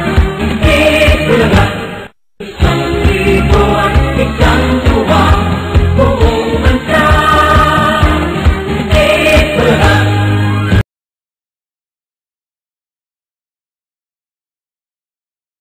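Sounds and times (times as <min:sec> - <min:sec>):
theme song: 0:00.0 - 0:10.8.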